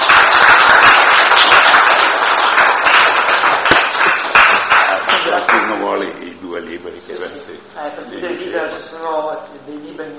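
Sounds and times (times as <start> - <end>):
audience applause: 0.0 - 5.6.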